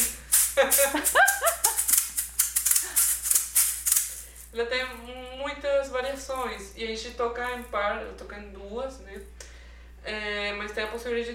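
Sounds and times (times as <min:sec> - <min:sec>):
maraca being shaken: 0:00.0 - 0:06.7
speech: 0:00.6 - 0:01.6, 0:04.6 - 0:09.3, 0:10.0 - 0:11.3
laughter: 0:00.8 - 0:01.9.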